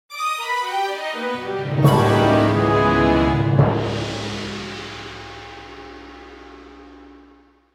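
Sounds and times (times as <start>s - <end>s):
dungeon exit game jingle: 1.4s - 4.4s.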